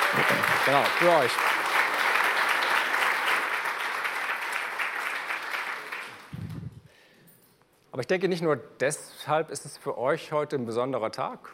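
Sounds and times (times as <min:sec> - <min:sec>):
audience clapping: 0:00.0 - 0:06.8
speech: 0:00.1 - 0:01.6, 0:08.0 - 0:11.5.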